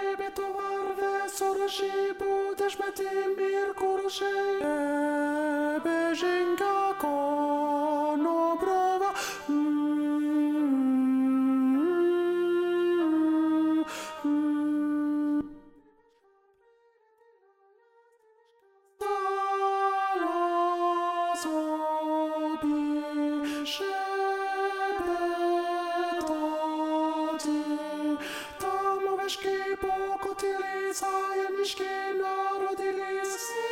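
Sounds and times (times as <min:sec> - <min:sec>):
alto voice singing a carol: 0:00.0 - 0:15.8, 0:19.0 - 0:33.7.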